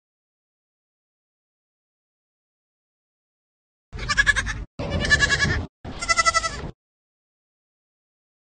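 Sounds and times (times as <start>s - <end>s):
goat bleating: 4.0s - 6.7s.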